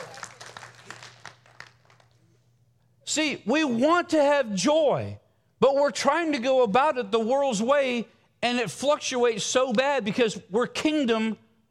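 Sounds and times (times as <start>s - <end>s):
audience clapping: 0.0s - 2.5s
low steady hum: 0.0s - 11.6s
speech: 3.2s - 11.4s.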